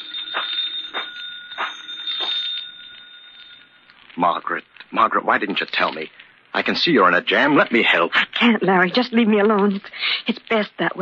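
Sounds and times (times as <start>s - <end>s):
old-fashioned telephone bell ringing: 0.0s - 4.0s
speech: 4.2s - 11.0s.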